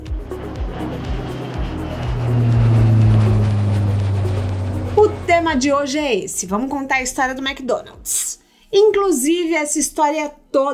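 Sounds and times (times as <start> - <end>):
small jet taking off: 0.0 - 6.5
speech: 5.5 - 10.7.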